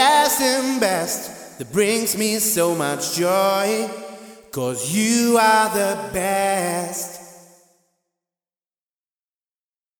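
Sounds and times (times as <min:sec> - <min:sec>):
wet male vocal variations: 0:00.0 - 0:07.4.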